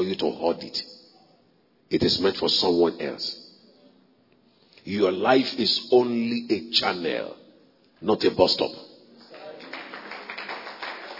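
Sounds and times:
speech: 0.0 - 1.0, 1.9 - 3.4, 4.8 - 7.4, 8.0 - 8.8
audience clapping: 9.2 - 11.1.

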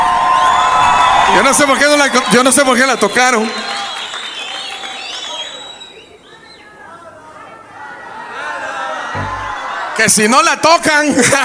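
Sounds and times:
audience applause: 0.0 - 6.0
speech: 1.4 - 3.7, 10.0 - 11.4
high whistles: 2.1 - 6.8
scattered shouts: 7.2 - 10.1.

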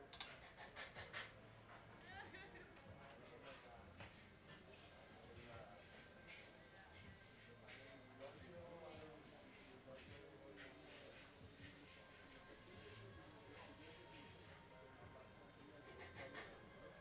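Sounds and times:
dishes and cutlery clinking: 0.1 - 0.6
many voices talking at the Rest Point Restaurant: 1.2 - 17.0.

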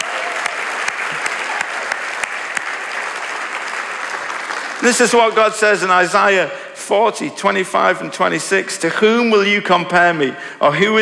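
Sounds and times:
audience applause: 0.0 - 5.6
speech: 4.8 - 11.0.

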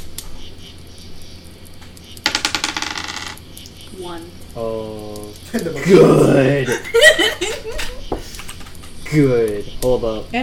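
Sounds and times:
six-sided die rolling: 2.2 - 3.6
speech: 4.0 - 7.0, 9.1 - 10.4
laughter: 5.6 - 9.0.

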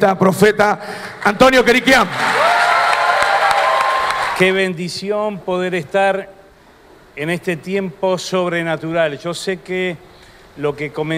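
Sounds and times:
speech: 0.0 - 2.5, 4.4 - 6.4, 7.2 - 11.1
loud sustained audience applause: 2.0 - 4.4
faint cheering and whoops: 2.1 - 4.4.

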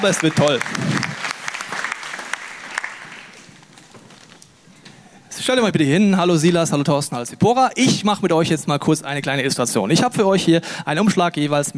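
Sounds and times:
speech: 0.0 - 1.1, 5.4 - 11.7
audience applause: 0.0 - 3.9.

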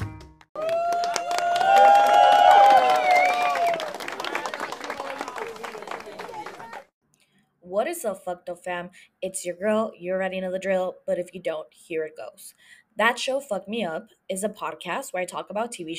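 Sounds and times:
audience applause and cheering: 0.6 - 6.9
speech: 7.9 - 15.9.

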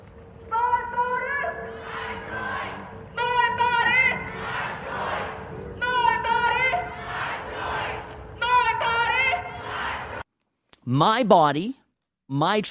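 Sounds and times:
low hum: 0.0 - 10.2
protest crowd chanting outside a house: 0.5 - 10.2
speech: 10.9 - 12.6.

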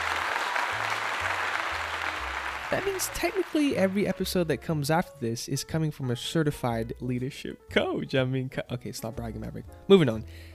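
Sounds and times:
applause sound effect: 0.0 - 4.4
speech: 2.7 - 10.5.

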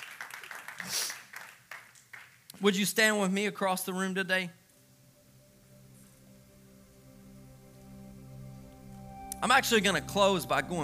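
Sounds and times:
audience clapping hands: 0.0 - 2.7
speech: 2.6 - 4.6, 9.4 - 10.8.

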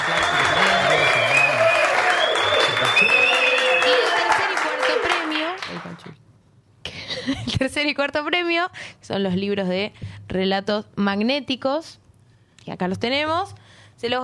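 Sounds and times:
audience applause: 0.0 - 6.0
speech: 7.9 - 12.0, 12.7 - 14.2.

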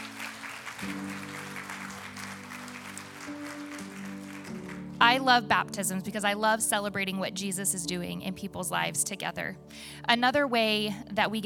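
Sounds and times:
crowd applause: 0.0 - 5.0
sustained keyboard chords: 0.0 - 11.4
speech: 5.0 - 11.4.

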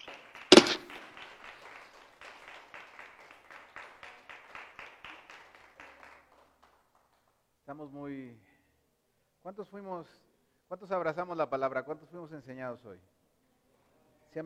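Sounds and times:
audience clapping: 0.0 - 6.8
speech: 7.7 - 8.5, 9.4 - 13.1.

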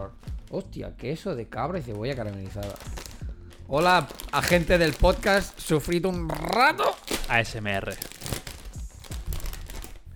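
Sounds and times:
speech: 0.0 - 3.0, 3.7 - 8.1
bag of potato chips being opened: 1.8 - 10.1.

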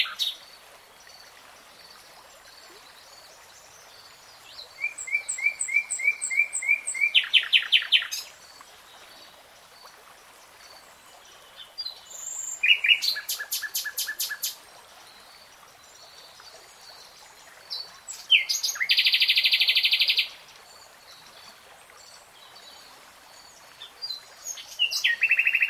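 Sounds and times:
nightingale song: 0.0 - 0.4, 4.4 - 8.3, 11.5 - 14.6, 17.7 - 20.4, 23.5 - 25.6.

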